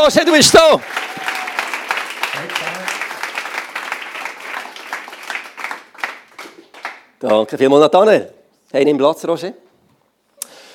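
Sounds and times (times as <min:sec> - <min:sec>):
speech: 0:00.0 - 0:01.2, 0:02.4 - 0:03.0, 0:07.2 - 0:09.6
audience applause: 0:00.3 - 0:07.2.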